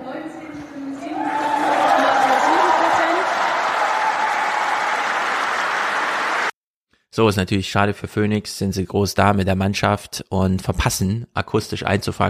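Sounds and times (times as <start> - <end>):
crowd cheering and applauding as an election result for Janine Wissler is announced: 0.9 - 6.6
speech: 7.2 - 12.2.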